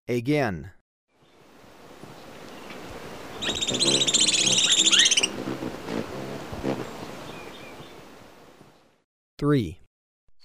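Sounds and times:
speech: 0:00.1 - 0:00.8, 0:09.4 - 0:09.8
forest background noise: 0:01.1 - 0:09.0
booted racket-tail call: 0:03.4 - 0:05.3.

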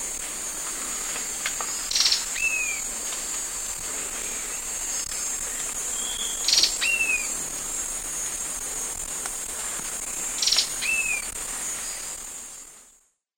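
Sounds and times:
Black-throated Antbird in South American eastern lowlands: 0:01.7 - 0:02.8, 0:04.1 - 0:07.4, 0:10.3 - 0:12.2.

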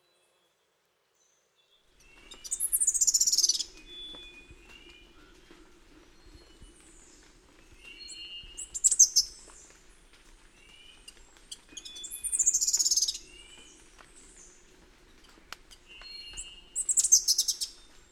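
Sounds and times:
birds of the Costa Rican cloud forest chirping and whistling: 0:02.0 - 0:09.7, 0:10.6 - 0:14.5, 0:15.9 - 0:17.8.

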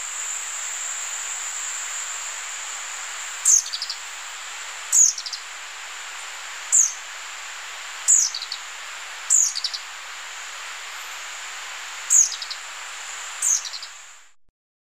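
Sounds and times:
mountain wren in South America: 0:00.0 - 0:14.3.

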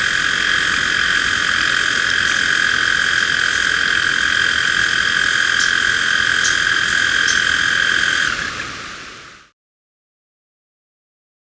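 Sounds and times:
Black-throated tody-tyrant calling: 0:00.0 - 0:08.6.

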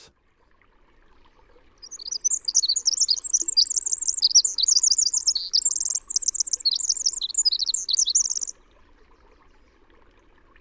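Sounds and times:
Western North American winter wren song: 0:01.8 - 0:08.6.

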